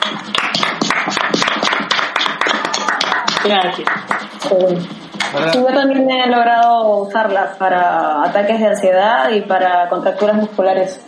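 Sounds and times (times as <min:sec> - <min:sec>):
applause: 0:00.0 - 0:04.4
speech: 0:03.4 - 0:11.0.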